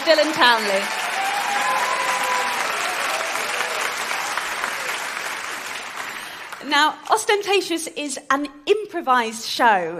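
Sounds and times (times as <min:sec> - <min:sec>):
speech: 0:00.0 - 0:01.0, 0:06.6 - 0:09.9
audience applause: 0:00.0 - 0:06.6.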